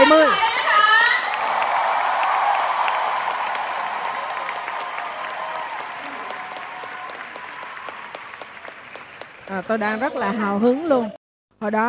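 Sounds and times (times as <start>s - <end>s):
audience applause: 1.0s - 10.4s
speech: 9.5s - 11.8s.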